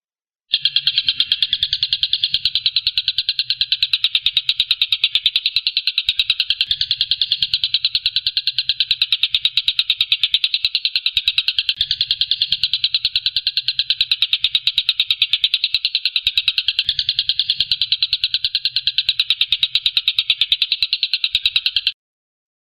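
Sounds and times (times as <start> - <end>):
stork-billed kingfisher harsh rattling call: 0.5 - 21.9.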